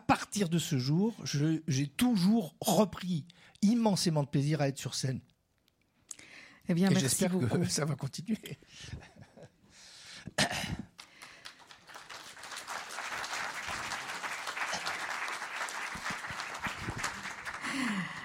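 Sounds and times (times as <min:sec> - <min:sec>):
speech: 0:00.1 - 0:05.3, 0:06.7 - 0:09.3
person coughing: 0:10.3 - 0:10.9
audience applause: 0:11.0 - 0:18.2.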